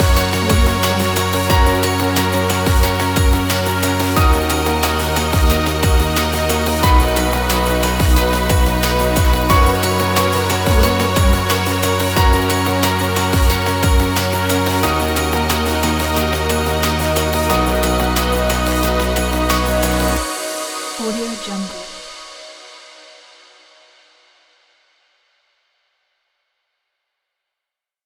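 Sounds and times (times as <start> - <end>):
pop inspiration kit: 0.0 - 22.4.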